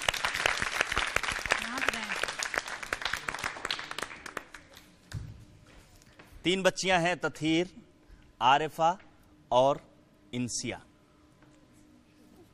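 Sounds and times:
loud applause: 0.0s - 4.8s
speech: 6.4s - 7.8s, 8.4s - 10.9s.

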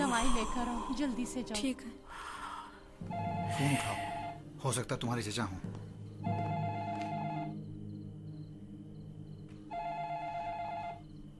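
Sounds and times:
speech: 0.2s - 2.4s, 3.0s - 6.5s
telephone bell ringing: 6.3s - 7.6s, 9.7s - 11.0s.

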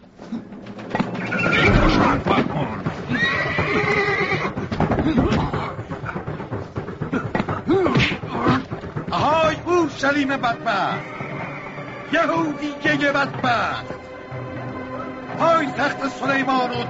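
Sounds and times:
hooves clip-clopping: 0.0s - 16.8s
horses neighing: 0.2s - 13.0s
speech: 0.3s - 0.6s, 10.0s - 11.2s, 12.1s - 14.0s, 15.4s - 16.8s.

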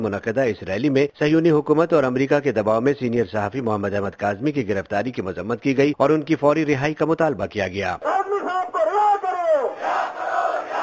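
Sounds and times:
speech: 0.0s - 9.0s
rough overlapping crowd noise: 8.0s - 10.8s
protesters chanting slogans against Israel and America at a rally in India: 9.6s - 10.8s.

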